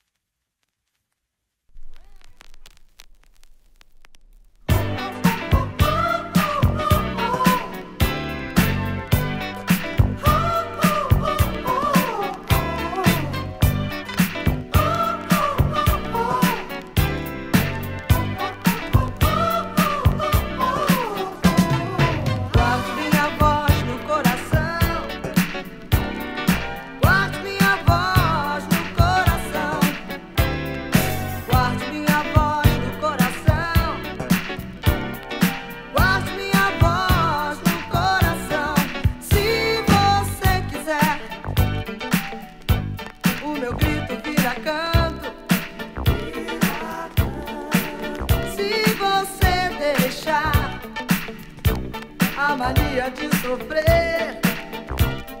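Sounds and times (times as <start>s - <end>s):
Brazilian boogie, disco and funk music: 1.8s - 55.3s.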